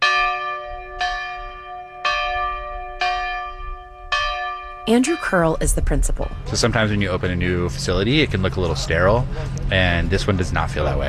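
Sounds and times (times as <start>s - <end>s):
original schoolhouse bell ringing: 0.0s - 8.4s
speech: 4.9s - 11.0s.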